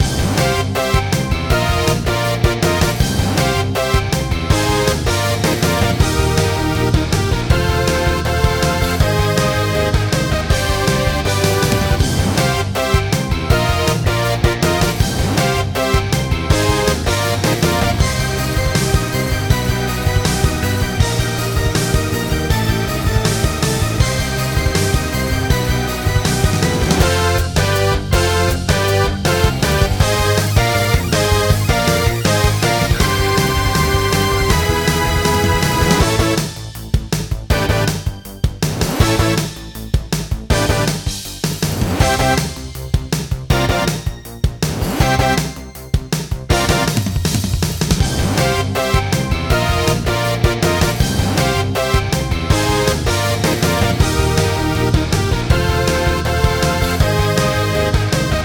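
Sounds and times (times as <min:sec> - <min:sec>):
claw crane game background music: 0:00.0 - 0:58.4.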